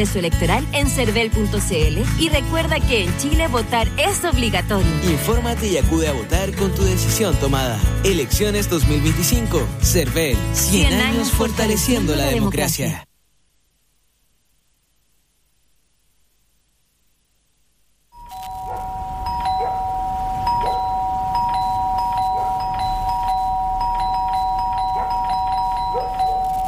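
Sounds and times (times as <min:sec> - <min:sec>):
speech: 0:00.0 - 0:13.1
doorbell with bright electronic tone: 0:18.2 - 0:26.6.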